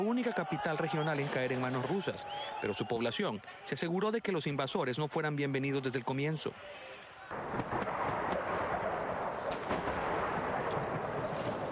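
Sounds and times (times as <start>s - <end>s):
speech: 0.0s - 7.5s
artillery fire in the Ukrainian city of Kherson: 7.4s - 11.7s.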